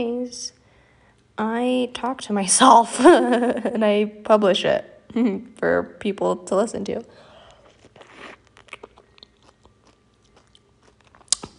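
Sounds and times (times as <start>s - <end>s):
speech: 0.0s - 0.6s, 1.4s - 7.3s
person biting and chewing grapefruit: 7.4s - 11.5s.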